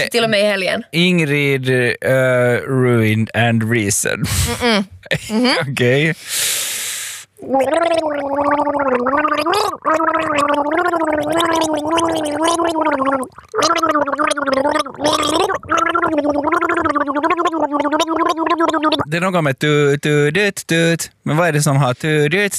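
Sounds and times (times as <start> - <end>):
speech: 0.0 - 6.6, 7.4 - 22.5
person gargling a tune: 7.4 - 20.3.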